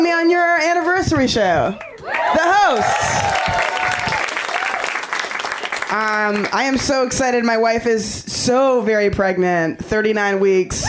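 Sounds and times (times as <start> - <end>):
speech: 1.1 - 3.6, 5.9 - 10.8
audience clapping: 1.8 - 7.0.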